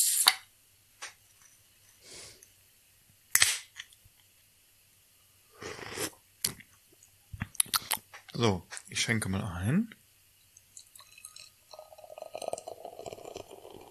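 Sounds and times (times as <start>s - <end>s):
beer can being opened: 0.0s - 0.4s, 3.4s - 3.9s
speech: 8.4s - 10.0s.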